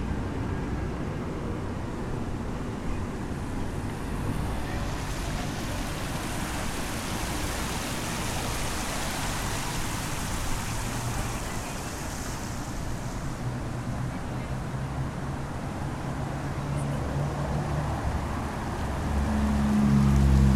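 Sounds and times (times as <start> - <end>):
Bells Fountain: 0.0 - 20.5.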